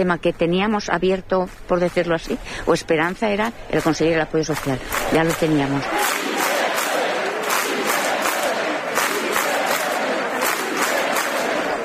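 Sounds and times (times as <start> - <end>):
speech: 0.0 - 6.2
crowd chanting a slogan in a city square: 3.8 - 11.8.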